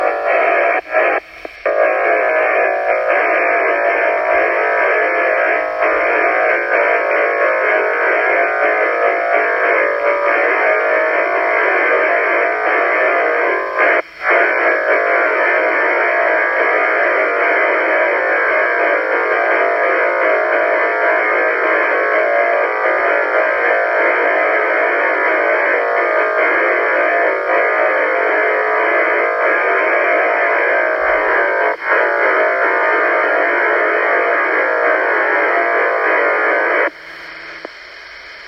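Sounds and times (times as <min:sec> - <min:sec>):
noise: 0:00.0 - 0:38.4.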